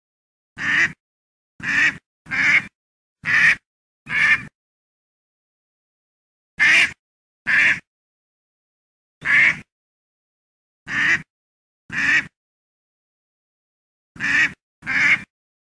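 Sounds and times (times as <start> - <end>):
duck giving harsh raspy quacks: 0.6 - 1.0, 1.6 - 4.5, 6.6 - 7.9, 9.2 - 9.7, 10.9 - 11.3, 11.9 - 12.4, 14.2 - 15.3.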